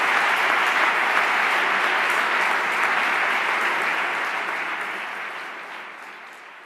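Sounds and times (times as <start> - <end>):
applause at award ceremony: 0.0 - 6.6.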